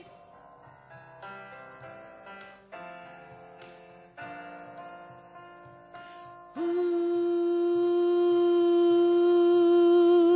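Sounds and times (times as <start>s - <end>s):
alto vocal parts: 6.6s - 10.3s.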